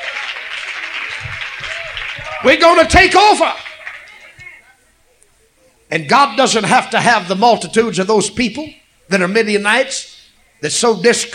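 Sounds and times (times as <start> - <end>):
audience clapping hands: 0.0 - 4.6
speech: 2.4 - 3.6, 5.9 - 11.3.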